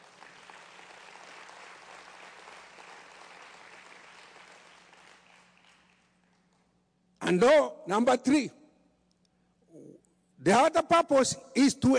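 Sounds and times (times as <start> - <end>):
audience hand clapping: 0.0 - 6.8
speech: 7.3 - 8.6, 10.4 - 11.9.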